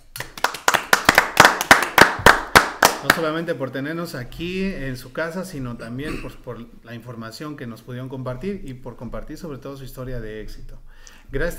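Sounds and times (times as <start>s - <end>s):
rhythmic hand clapping: 0.0s - 3.3s
speech: 3.0s - 11.5s.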